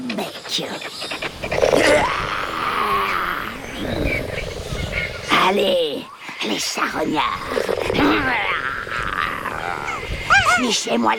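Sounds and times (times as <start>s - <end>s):
speech: 0.2s - 2.2s, 5.4s - 5.9s, 6.6s - 8.5s, 10.6s - 11.1s
loud raspy animal roar: 1.2s - 5.8s, 6.9s - 10.3s.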